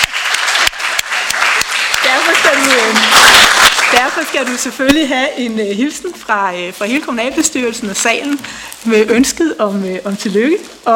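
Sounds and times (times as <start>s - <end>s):
council hall audience applauding a municipal director's 10-year anniversary: 0.0s - 5.0s
speech: 2.2s - 10.9s.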